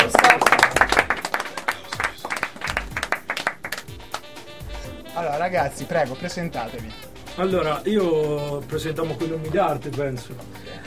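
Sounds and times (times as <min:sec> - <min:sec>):
audience applause: 0:00.0 - 0:04.2
speech: 0:05.4 - 0:10.8.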